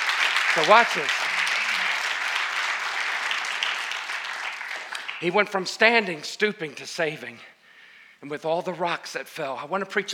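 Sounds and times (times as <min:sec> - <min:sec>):
loud audience applause: 0:00.0 - 0:05.5
speech: 0:00.5 - 0:01.2, 0:05.2 - 0:07.5, 0:08.2 - 0:10.1.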